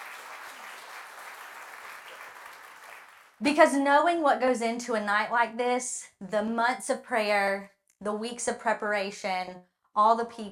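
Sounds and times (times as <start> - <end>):
audience applause: 0.0 - 3.4
speech: 3.4 - 10.5.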